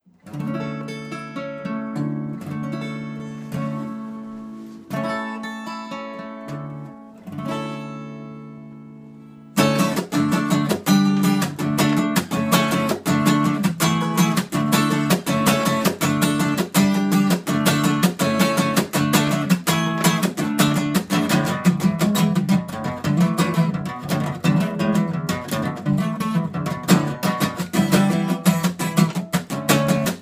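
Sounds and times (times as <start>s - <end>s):
acoustic music: 0.0s - 30.1s.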